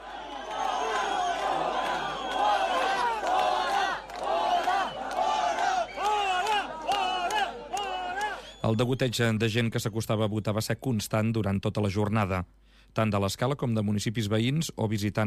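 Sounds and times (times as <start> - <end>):
claps: 0.0 - 8.6
crowd shouting to drive people out: 0.0 - 8.6
speech: 8.7 - 15.2.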